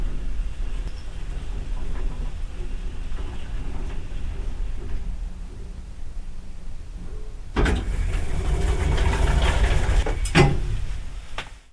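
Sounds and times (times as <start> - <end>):
elevator ambience sound effect: 0.0 - 11.4.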